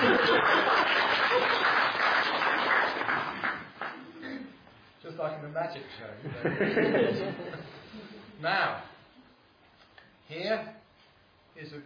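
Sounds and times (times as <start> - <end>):
laughter: 0.0 - 1.7, 6.2 - 8.2
applause: 0.0 - 4.1
speech: 5.6 - 7.5, 8.4 - 8.9, 10.3 - 10.8, 11.6 - 11.8.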